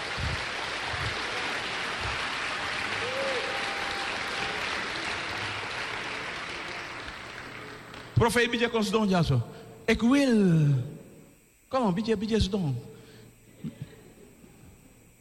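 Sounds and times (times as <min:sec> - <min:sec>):
large audience applause: 0:00.0 - 0:08.2
speech: 0:08.2 - 0:11.0, 0:11.7 - 0:12.9.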